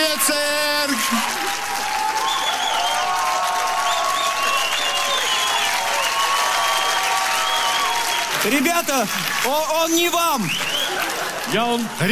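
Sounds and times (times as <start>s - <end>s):
audience applause: 0.0s - 12.1s
speech: 1.0s - 1.5s, 8.4s - 10.9s, 11.5s - 12.1s.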